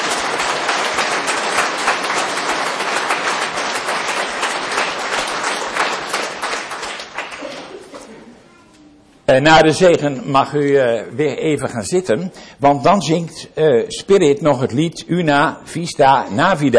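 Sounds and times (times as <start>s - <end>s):
loud audience applause: 0.0s - 7.9s
speech: 9.3s - 16.7s.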